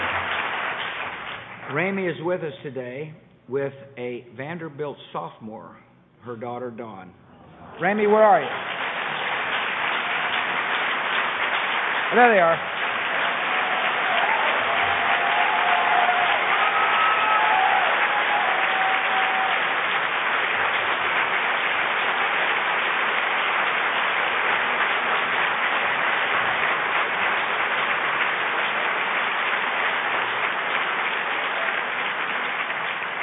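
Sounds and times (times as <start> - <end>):
audience applause: 0.0 - 1.8, 7.8 - 33.2
speech: 1.7 - 7.2, 7.8 - 8.7, 12.1 - 12.8
faint whistles and cheers: 13.1 - 19.8.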